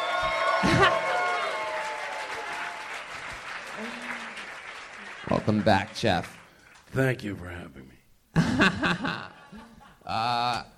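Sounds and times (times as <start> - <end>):
talk show audience applause and cheering for a guest's introduction: 0.0 - 6.8
laughter: 0.5 - 1.3, 8.4 - 10.2
speech: 5.5 - 9.4, 10.1 - 10.7.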